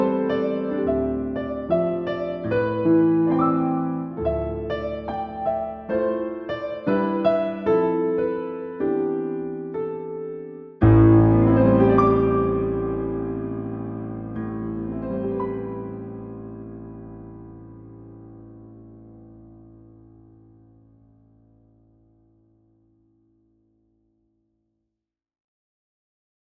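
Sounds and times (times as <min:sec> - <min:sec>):
easy sorrowful keyboard music: 0:00.0 - 0:21.1.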